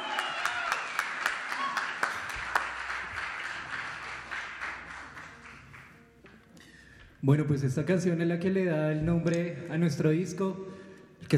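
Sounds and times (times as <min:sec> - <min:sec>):
concert audience applause: 0:00.0 - 0:06.1
speech: 0:07.2 - 0:10.7.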